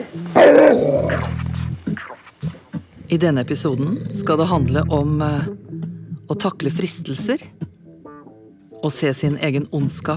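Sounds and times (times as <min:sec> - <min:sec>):
dog barking and growling: 0:00.0 - 0:05.6, 0:09.8 - 0:10.1
speech: 0:03.1 - 0:05.6, 0:06.3 - 0:07.6, 0:08.8 - 0:10.1.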